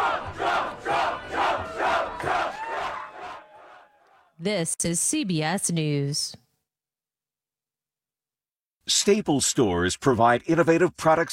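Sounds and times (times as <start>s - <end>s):
large crowd cheering at the Iowa–Iowa State football game in Ames, Iowa: 0.0s - 4.4s
speech: 4.4s - 6.4s, 8.9s - 11.3s.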